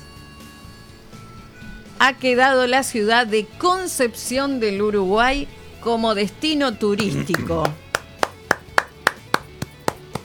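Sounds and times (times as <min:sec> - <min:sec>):
speech: 0:02.0 - 0:07.8
woman clapping her hands: 0:06.9 - 0:10.2.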